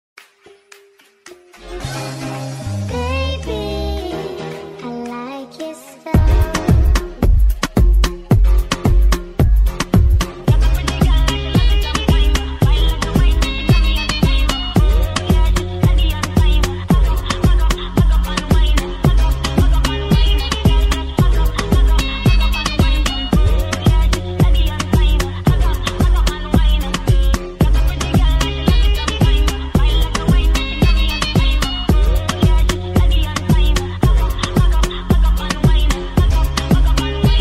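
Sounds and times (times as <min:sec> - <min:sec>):
sped up remix music: 0:00.2 - 0:37.3.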